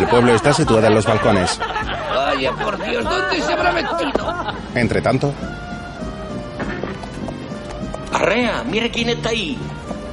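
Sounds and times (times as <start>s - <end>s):
laughter: 0.0s - 4.9s
speech: 0.1s - 5.7s, 8.2s - 9.8s
horse hooves clip-clopping through village streets: 6.7s - 8.2s.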